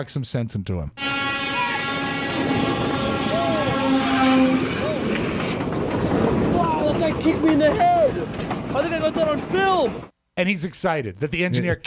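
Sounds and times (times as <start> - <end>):
speech: 0.0 - 1.0, 7.0 - 11.8
freight train passing: 1.0 - 10.1.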